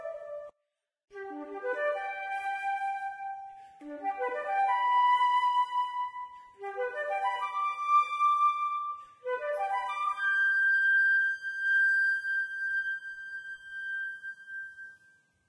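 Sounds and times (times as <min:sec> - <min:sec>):
flute melody: 0:00.0 - 0:00.5, 0:01.1 - 0:15.4.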